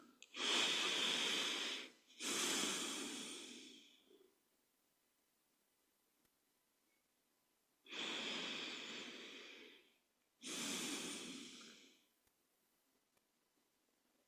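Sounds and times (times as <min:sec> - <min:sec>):
deep breaths during a guided meditation: 0:00.0 - 0:04.3, 0:07.9 - 0:12.1.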